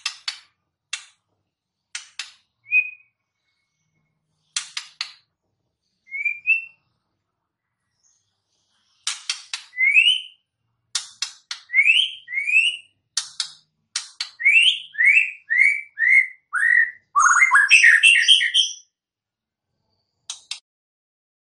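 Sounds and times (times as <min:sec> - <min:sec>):
white-rumped shama song: 0:02.6 - 0:03.2, 0:06.0 - 0:07.0, 0:09.5 - 0:10.5, 0:11.6 - 0:13.0, 0:14.2 - 0:18.9.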